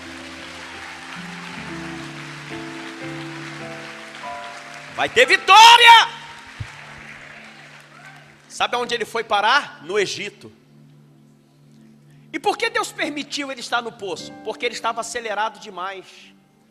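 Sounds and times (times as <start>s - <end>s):
audience applauding: 0.0s - 8.8s
sustained keyboard chords: 0.0s - 15.7s
speech: 5.0s - 6.2s, 8.6s - 10.6s, 12.4s - 16.4s
man calling out: 5.1s - 6.3s.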